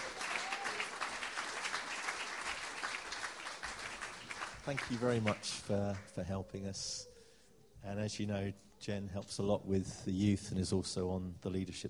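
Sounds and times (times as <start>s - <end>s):
audience applause: 0.0s - 6.2s
speech: 4.7s - 7.1s, 7.8s - 11.8s.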